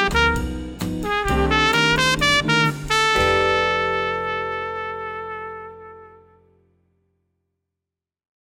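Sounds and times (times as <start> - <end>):
latin etude trumpet section playing: 0.0 - 6.6.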